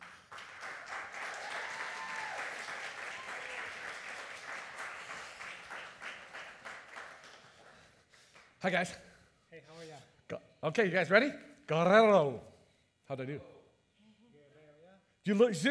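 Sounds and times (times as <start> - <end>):
audience applause at a community gathering: 0.0 - 8.4
speech: 8.6 - 9.1, 10.3 - 12.5, 13.1 - 13.5, 15.2 - 15.6.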